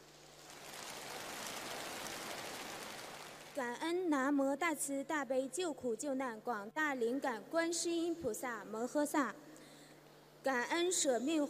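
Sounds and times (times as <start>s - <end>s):
audience applause: 0.0s - 3.6s
speech: 3.6s - 9.5s, 10.4s - 11.4s.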